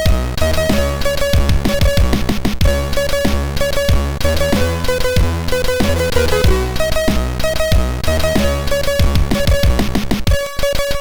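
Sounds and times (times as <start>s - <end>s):
chiptune piano piece on a MOS6581R3 SID chip: 0.0s - 10.9s.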